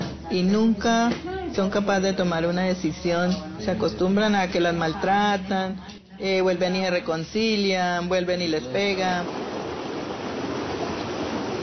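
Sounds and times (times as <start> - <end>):
speech: 0.3 - 9.4
Caquetá river flowing: 8.9 - 11.6.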